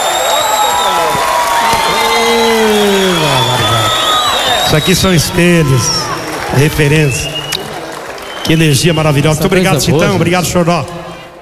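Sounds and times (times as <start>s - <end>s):
audience applause: 0.0s - 9.7s
speech: 4.7s - 7.4s, 8.5s - 11.0s.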